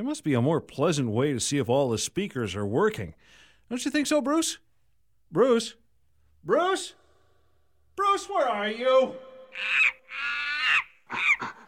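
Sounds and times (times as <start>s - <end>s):
speech: 0.0s - 4.7s, 5.3s - 5.8s, 6.4s - 7.0s, 8.0s - 10.3s
monkeys calling: 9.5s - 11.6s.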